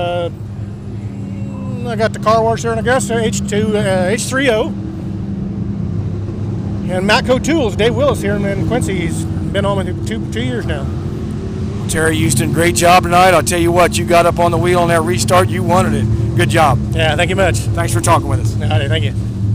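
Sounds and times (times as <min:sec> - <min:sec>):
IMCA stock car racing at Quincy Raceway in Mt Sterling IL: 0:00.0 - 0:19.5.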